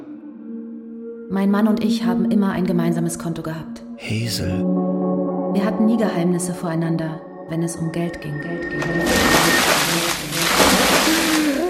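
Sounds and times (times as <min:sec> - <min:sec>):
speech: 0:01.3 - 0:04.8, 0:05.5 - 0:11.2
buckets of water poured over a man: 0:08.8 - 0:11.6.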